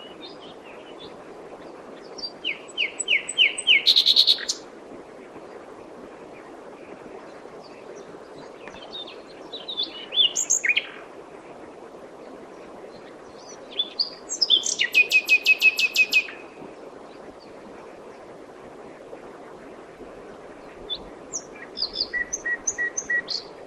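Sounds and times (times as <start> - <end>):
common nightingale singing: 2.2 - 4.6, 8.6 - 11.0, 13.4 - 16.5, 20.9 - 23.5.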